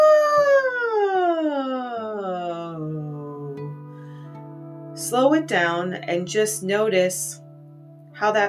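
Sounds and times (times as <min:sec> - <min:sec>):
voice sliding down in pitch like a siren: 0:00.0 - 0:03.6
speech: 0:05.1 - 0:07.4, 0:08.2 - 0:08.4.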